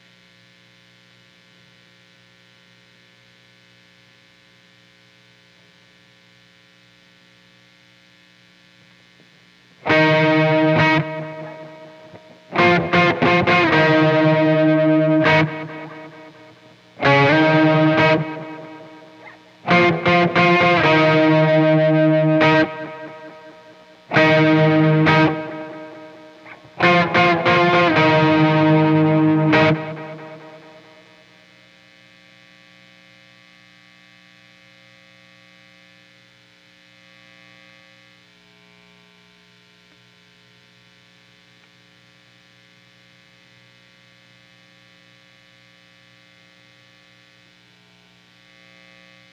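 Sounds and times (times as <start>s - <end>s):
guitar: 9.8s - 31.3s.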